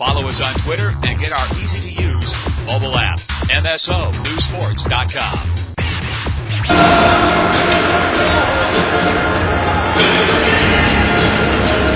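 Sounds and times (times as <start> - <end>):
speech: 0.1 - 5.6, 6.5 - 7.4
hockey rink crowd cheering and chatter: 6.7 - 11.9.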